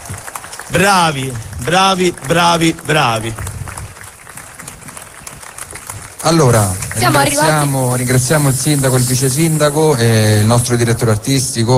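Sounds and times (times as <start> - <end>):
audience applause: 0.0 - 8.3
speech: 0.1 - 3.4, 6.2 - 11.7.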